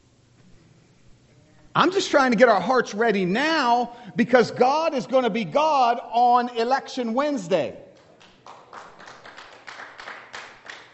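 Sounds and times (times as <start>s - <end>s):
speech: 1.8s - 7.8s
a few scattered claps: 7.9s - 10.9s.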